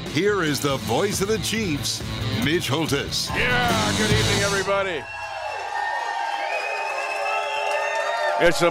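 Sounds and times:
speech: 0:00.1 - 0:05.2, 0:08.4 - 0:08.6
rowdy crowd cheering: 0:03.3 - 0:08.6.

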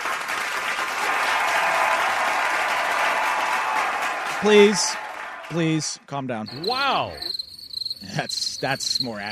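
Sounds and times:
applause sound effect: 0:00.0 - 0:05.8
speech: 0:04.4 - 0:07.4, 0:08.0 - 0:09.2.

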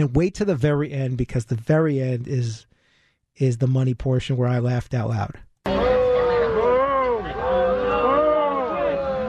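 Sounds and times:
speech: 0:00.0 - 0:02.7, 0:03.4 - 0:05.5
crowd booing: 0:05.7 - 0:09.2.

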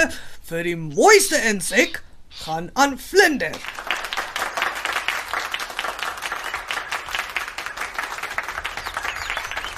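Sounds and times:
speech: 0:00.0 - 0:04.0
crowd clapping hands: 0:03.5 - 0:09.7.

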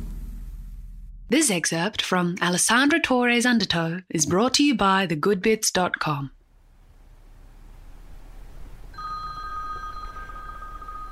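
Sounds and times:
speech: 0:01.3 - 0:06.4
constant low hiss: 0:06.4 - 0:11.1
cell phone ringtone muffled by sheets and pillows: 0:09.0 - 0:11.1.

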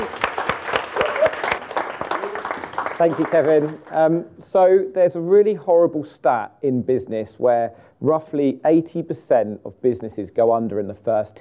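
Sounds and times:
audience applause: 0:00.0 - 0:04.0
speech: 0:03.0 - 0:11.3.

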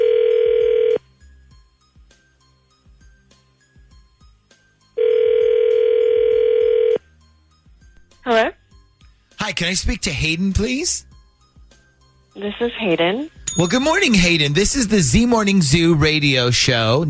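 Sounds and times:
telephone ringback tone: 0:00.0 - 0:01.0, 0:05.0 - 0:07.0
speech: 0:09.6 - 0:11.1, 0:12.4 - 0:17.0.

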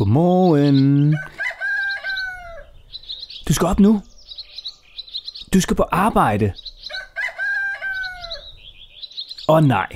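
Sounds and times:
speech: 0:00.0 - 0:01.4, 0:03.5 - 0:04.1, 0:05.5 - 0:06.7, 0:09.5 - 0:09.9
rooster crowing in the early morning: 0:01.1 - 0:02.7, 0:06.9 - 0:08.5.

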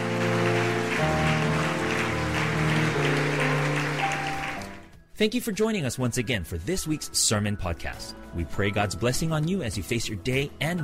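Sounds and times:
audience clapping hands: 0:00.0 - 0:05.0
speech: 0:05.2 - 0:10.8.

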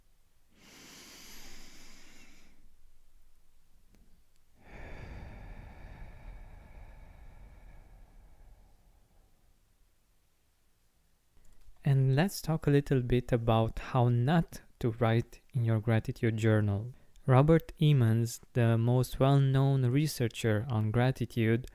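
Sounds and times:
person breathing in through the nose and out through the mouth: 0:00.5 - 0:02.8, 0:04.6 - 0:09.6
speech: 0:12.2 - 0:21.7.

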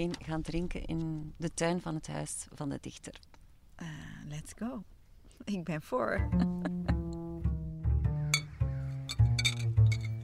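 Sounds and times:
speech: 0:00.0 - 0:07.0
low tonal hum: 0:06.0 - 0:10.2
laughter: 0:06.2 - 0:07.2
glass Sint-Bernardus beer bottles clinking as opened in a garden: 0:08.4 - 0:10.2.

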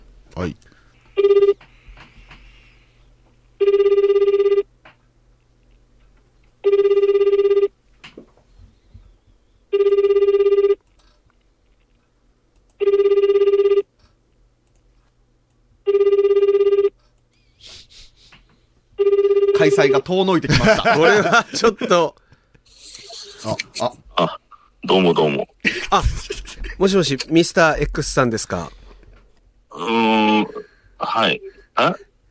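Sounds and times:
speech: 0:00.4 - 0:01.5, 0:19.7 - 0:22.2, 0:23.4 - 0:24.3, 0:24.9 - 0:28.8, 0:31.2 - 0:32.0
ringback tone of an outgoing telephone call: 0:01.2 - 0:01.6, 0:03.6 - 0:04.7, 0:06.6 - 0:07.7, 0:09.7 - 0:10.8, 0:12.8 - 0:13.9, 0:15.9 - 0:16.9, 0:19.0 - 0:19.8
laughter: 0:20.4 - 0:22.0, 0:25.6 - 0:26.8.

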